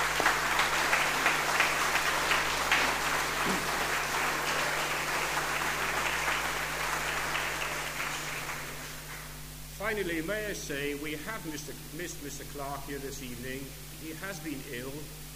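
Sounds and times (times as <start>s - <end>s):
audience applause: 0.0s - 9.3s
speech: 9.9s - 15.2s.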